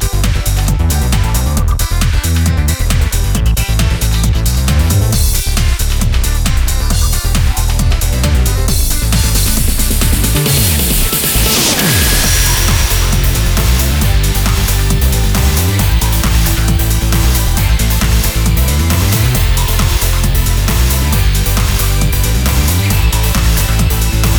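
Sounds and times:
instrumental music without vocals: 0:00.0 - 0:24.3.

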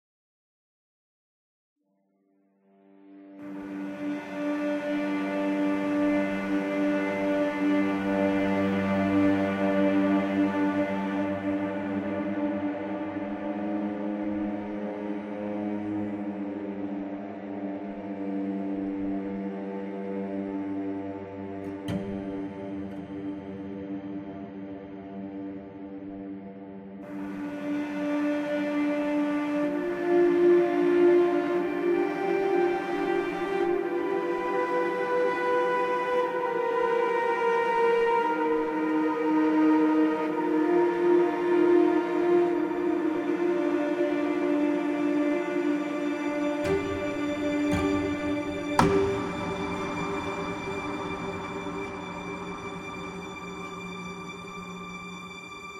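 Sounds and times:
cave music: 0:02.6 - 0:55.7.

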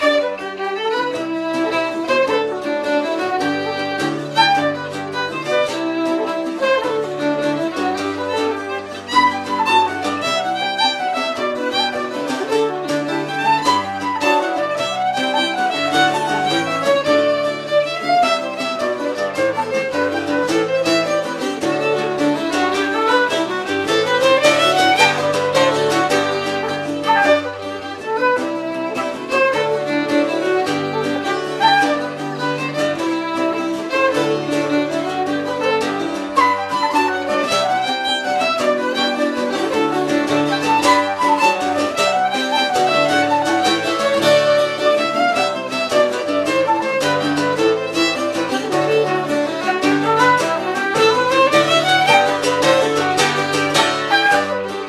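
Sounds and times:
orchestra ambience: 0:00.0 - 0:54.8.

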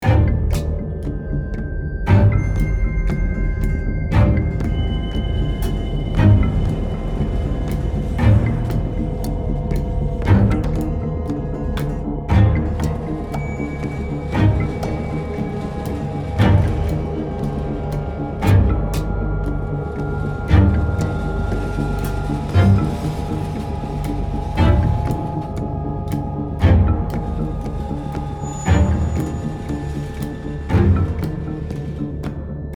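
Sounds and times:
action loop: 0:00.0 - 0:32.7.

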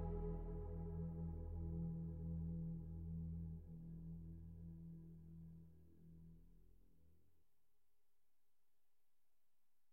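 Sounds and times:
ambient synth pad: 0:00.0 - 0:05.0.

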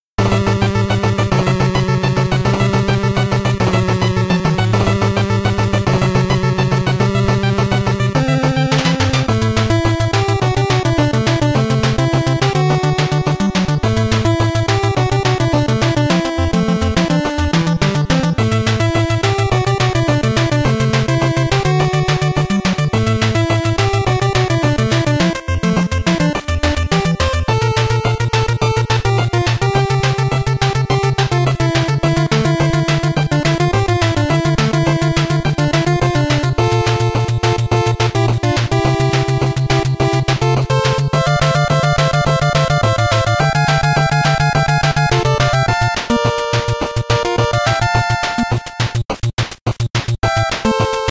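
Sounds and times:
8-bit last boss intro music: 0:00.2 - 0:51.1.

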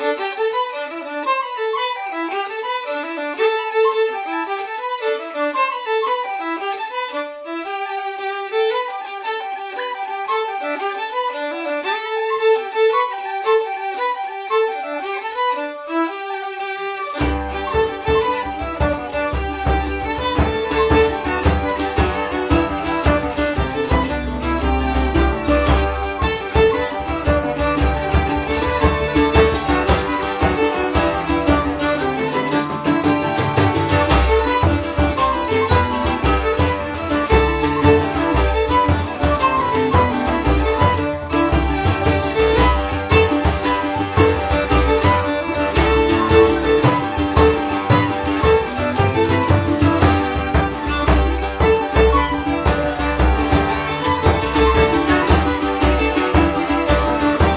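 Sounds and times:
orchestra ambience: 0:00.0 - 0:57.5.

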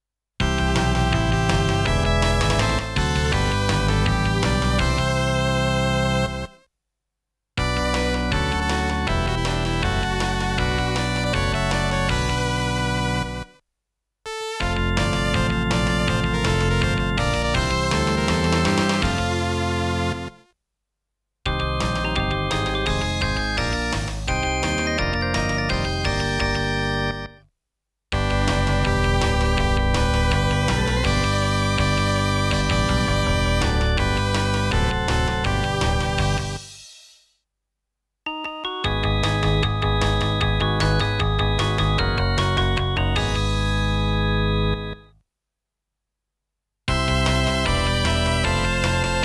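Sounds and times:
Electone organ medley: 0:00.4 - 0:06.5, 0:07.6 - 0:13.5, 0:14.6 - 0:20.4, 0:21.5 - 0:27.4, 0:28.2 - 0:36.7, 0:38.6 - 0:45.1, 0:46.9 - 0:49.2.

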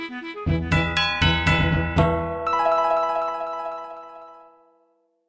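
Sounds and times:
level up jingle: 0:00.5 - 0:04.5.

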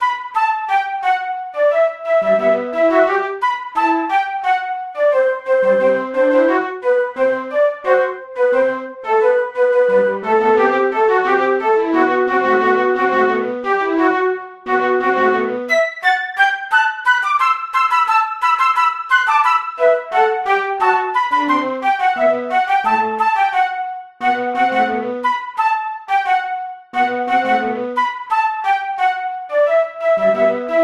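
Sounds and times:
flute: 0:00.0 - 0:30.8.

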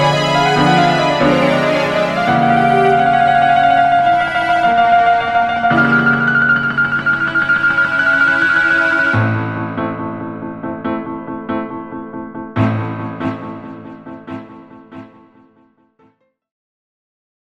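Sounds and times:
string concerto: 0:00.0 - 0:09.8, 0:12.6 - 0:15.5.

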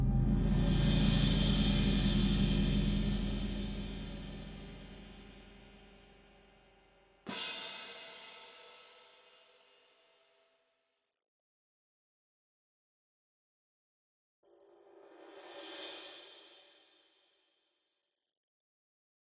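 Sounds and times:
simulated combat percussion ambience: 0:00.0 - 0:05.6.

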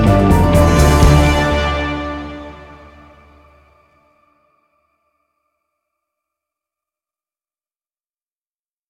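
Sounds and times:
guitar theme: 0:00.0 - 0:04.0.

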